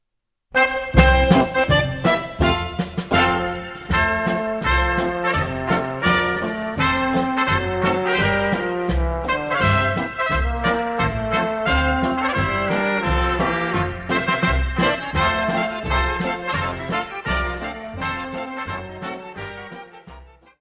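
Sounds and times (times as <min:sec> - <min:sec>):
polka music from Austria: 0:00.5 - 0:20.5.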